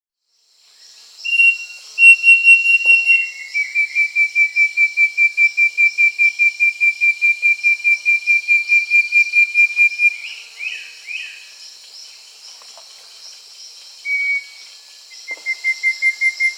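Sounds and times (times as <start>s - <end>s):
southern nightingale-wren whistling song in South America: 1.2s - 11.6s, 14.0s - 16.5s.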